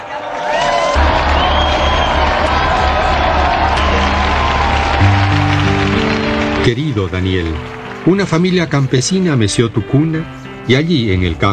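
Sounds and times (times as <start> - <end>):
audience applause: 0.0 - 9.4
speech: 6.6 - 11.5.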